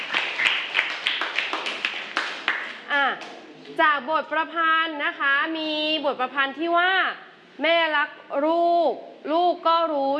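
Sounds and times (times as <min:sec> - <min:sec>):
applause: 0:00.0 - 0:03.3
speech: 0:03.8 - 0:10.1.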